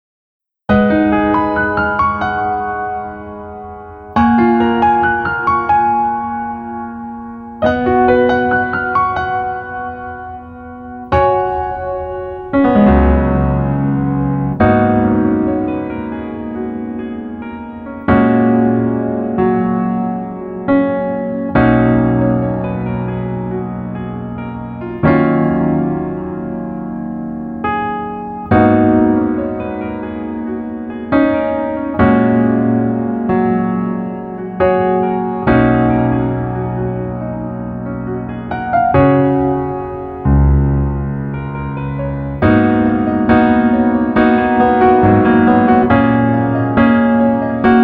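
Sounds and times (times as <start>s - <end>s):
piano melody backing track lowered one key: 0.7s - 47.8s.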